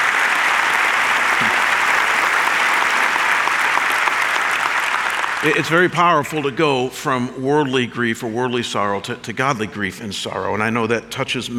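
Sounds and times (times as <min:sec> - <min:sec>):
audience clapping: 0:00.0 - 0:06.6
speech: 0:05.4 - 0:11.5.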